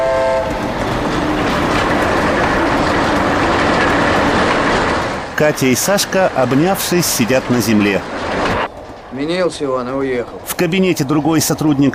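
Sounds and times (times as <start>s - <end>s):
train horn tone: 0.0s - 0.6s
freight train rolling past: 0.0s - 11.9s
speech: 5.4s - 8.4s, 9.1s - 11.9s.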